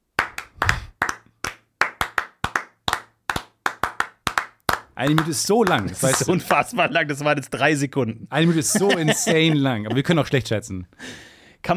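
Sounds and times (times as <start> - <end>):
people clapping hands: 0.1 - 6.7
speech: 5.0 - 11.7
laughter: 5.7 - 7.2, 8.3 - 10.4.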